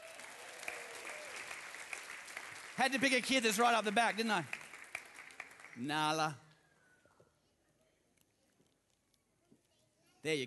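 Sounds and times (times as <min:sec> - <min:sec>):
audience applause: 0:00.0 - 0:06.2
speech: 0:02.8 - 0:04.6, 0:05.8 - 0:06.4, 0:10.2 - 0:10.4.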